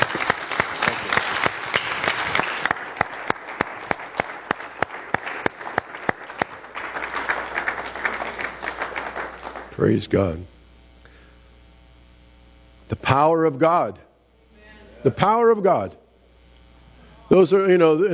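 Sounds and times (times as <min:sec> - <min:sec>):
sharp louder individual claps: 0:00.0 - 0:09.8
audience applause: 0:00.0 - 0:10.0
speech: 0:09.8 - 0:10.5, 0:12.9 - 0:14.1, 0:15.0 - 0:16.0, 0:17.3 - 0:18.1.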